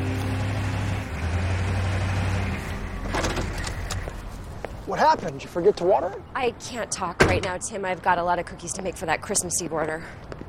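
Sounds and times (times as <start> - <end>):
car engine rumbling: 0.0 - 6.2
speech: 4.9 - 10.4.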